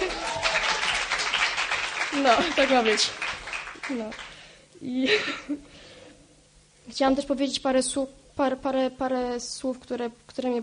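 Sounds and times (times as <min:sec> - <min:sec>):
applause: 0:00.0 - 0:04.5
speech: 0:02.1 - 0:03.3, 0:03.9 - 0:05.8, 0:06.9 - 0:10.6.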